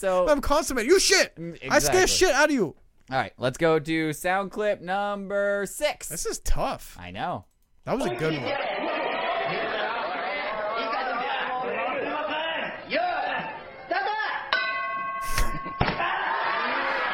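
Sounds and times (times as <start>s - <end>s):
speech: 0.0s - 8.8s
laughter: 8.0s - 12.6s, 15.2s - 17.1s
steady crowd chatter: 8.1s - 12.9s
bright ringing ding: 14.5s - 16.0s.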